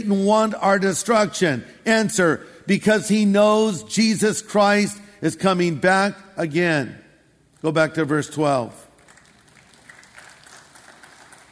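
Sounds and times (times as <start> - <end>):
speech: 0.0 - 7.0, 7.6 - 8.8
faint smattering of audience applause during a sermon: 9.0 - 11.5.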